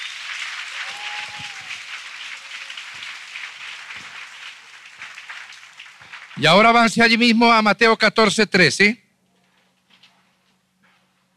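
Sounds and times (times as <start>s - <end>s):
audience applause: 0.0s - 7.3s
speech: 6.4s - 9.0s.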